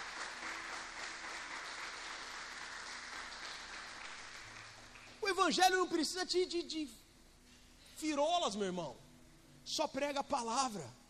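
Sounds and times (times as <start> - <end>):
audience applause: 0.0 - 5.2
speech: 5.4 - 7.0, 8.0 - 9.0, 9.6 - 11.0.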